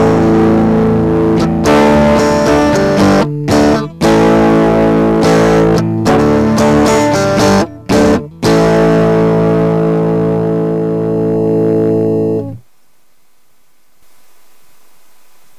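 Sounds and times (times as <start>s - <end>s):
Interfax Harmonics Percolator distorted synthesizer tone: 0.0s - 12.6s.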